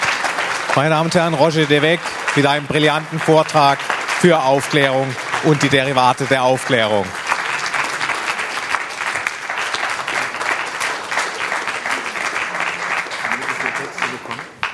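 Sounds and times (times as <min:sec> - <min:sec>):
audience applause after a lecture: 0:00.0 - 0:14.7
speech: 0:00.8 - 0:07.2.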